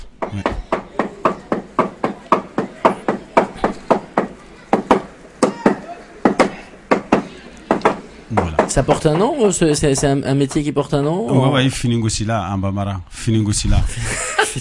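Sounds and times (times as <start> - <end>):
wooden mallets pounding cloth: 0.0 - 9.3
speech: 0.3 - 0.6, 8.8 - 14.5
laughter: 13.9 - 14.5.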